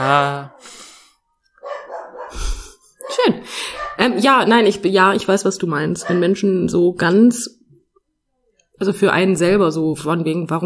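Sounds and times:
speech: 0.0s - 0.8s, 3.2s - 7.6s, 8.8s - 10.6s
dog barking: 1.6s - 2.4s, 3.0s - 4.6s, 6.0s - 6.4s.

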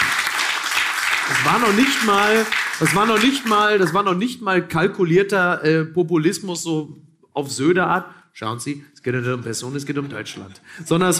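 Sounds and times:
audience applause: 0.0s - 4.1s
speech: 1.3s - 11.1s.

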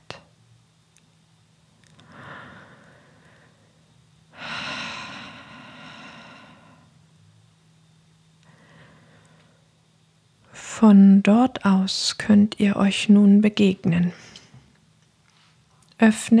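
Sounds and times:
audible breathing: 1.9s - 7.0s, 8.4s - 9.7s
speech: 10.8s - 14.3s, 16.0s - 16.3s.

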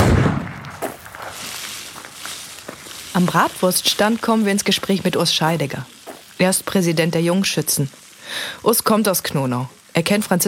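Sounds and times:
rifle shot on a shooting range heard through ear protection: 0.0s - 1.0s
sharp crack: 0.0s - 6.5s
speech: 3.2s - 10.4s.

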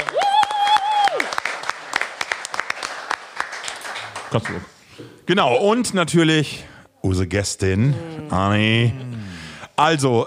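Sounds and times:
audience applause: 0.0s - 4.7s
speech: 4.3s - 9.1s, 9.8s - 10.2s.

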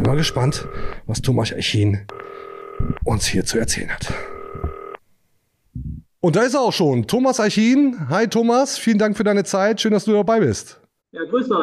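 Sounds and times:
telephone ringing: 0.0s - 1.1s, 2.1s - 3.4s, 4.0s - 5.0s
speech: 0.1s - 4.3s, 5.8s - 11.6s.

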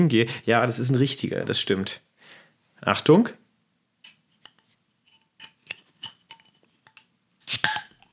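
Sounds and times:
speech: 0.0s - 2.1s, 2.8s - 3.4s
beer bottle cap pop: 7.4s - 8.1s.

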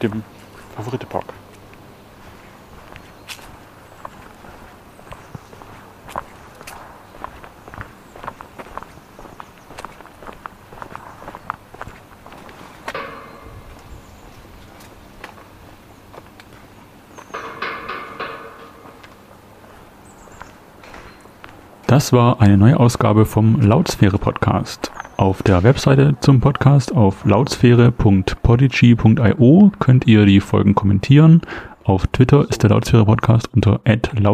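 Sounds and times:
speech: 0.0s - 1.4s, 21.9s - 34.3s
footsteps walking: 0.1s - 21.9s
turnstile rattling: 17.3s - 19.4s.

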